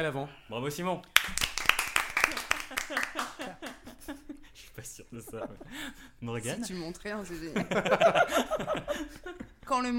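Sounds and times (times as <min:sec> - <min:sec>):
speech: 0:00.0 - 0:01.4, 0:04.8 - 0:09.9
replayed applause: 0:01.2 - 0:03.9
laughter: 0:02.3 - 0:09.6.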